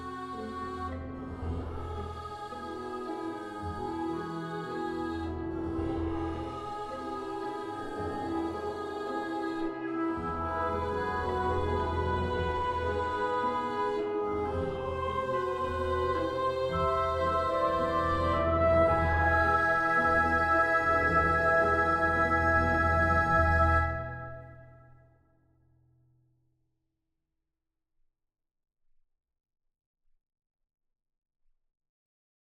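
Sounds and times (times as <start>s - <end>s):
orchestra playing: 0.4s - 24.6s.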